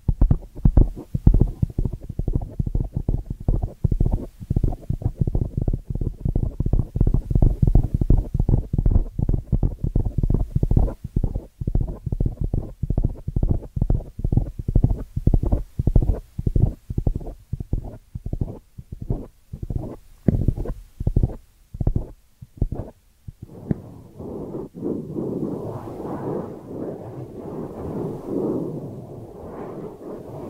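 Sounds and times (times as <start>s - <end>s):
ear cleaning crackles and pops: 0.0s - 30.4s
soft rustling scrape: 22.8s - 30.4s.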